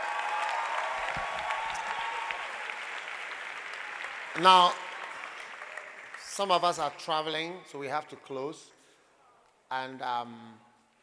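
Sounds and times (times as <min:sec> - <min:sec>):
audience clapping: 0:00.0 - 0:07.6
speech: 0:04.4 - 0:04.8, 0:06.4 - 0:08.8, 0:09.7 - 0:10.6.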